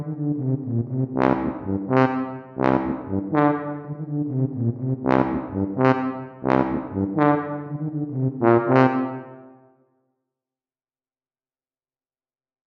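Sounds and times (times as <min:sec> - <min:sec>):
tuba: 0:00.0 - 0:09.6.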